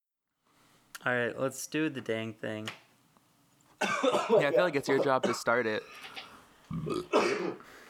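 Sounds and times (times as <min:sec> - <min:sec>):
speech: 0:01.0 - 0:02.8, 0:04.0 - 0:07.8
person coughing: 0:03.8 - 0:06.1, 0:06.7 - 0:07.6.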